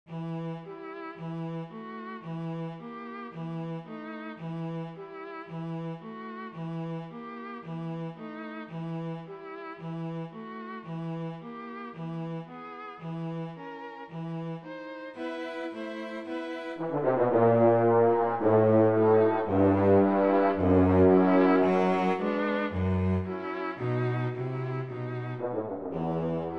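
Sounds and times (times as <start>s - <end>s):
orchestra playing: 15.2s - 26.5s.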